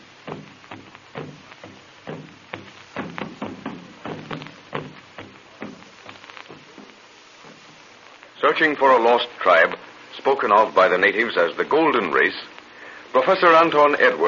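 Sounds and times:
hollow log drums with stretched skin booming: 0.0 - 8.4
speech: 8.5 - 12.5, 13.2 - 14.2.

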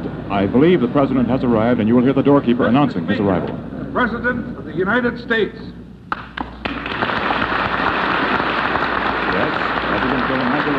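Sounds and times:
speech: 0.3 - 5.8, 10.6 - 10.7
large crowd applauding for the arriving president: 6.1 - 10.7.

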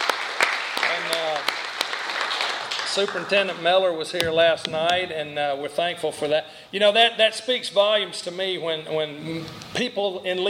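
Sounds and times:
round of applause for a Board of Education member: 0.0 - 3.7
speech: 2.9 - 10.4.

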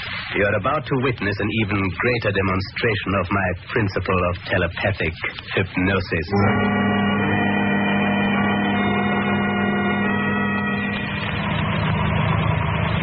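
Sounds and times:
speech: 0.3 - 6.9
car engine humming as it pulls over to the curb: 6.2 - 13.0.

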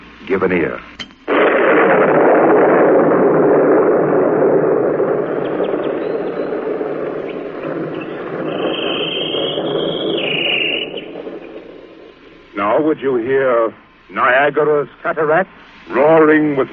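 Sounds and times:
speech: 0.3 - 1.1, 1.8 - 2.8, 12.8 - 16.7
thunder: 1.3 - 13.2
bird answering thunder with whistled notes: 5.3 - 12.1.

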